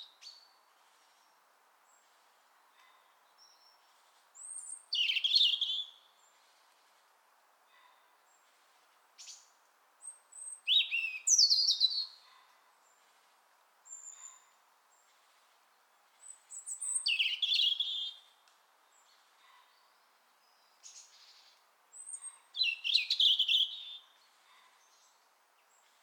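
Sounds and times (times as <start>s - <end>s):
European robin song: 4.4s - 6.4s, 9.2s - 12.2s, 16.2s - 25.9s.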